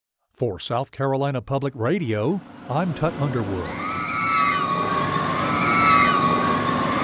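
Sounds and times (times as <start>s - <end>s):
speech: 0.4s - 3.9s
steady mechanical hum: 1.9s - 7.0s
riders screaming with delight on fair rides: 3.6s - 7.0s.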